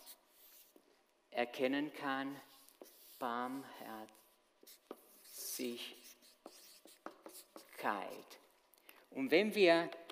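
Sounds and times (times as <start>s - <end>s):
pen or chalk writing large letters on a board: 0.0s - 0.9s, 2.4s - 8.4s
speech: 1.4s - 4.9s, 5.6s - 6.0s, 7.8s - 8.4s, 9.1s - 10.0s.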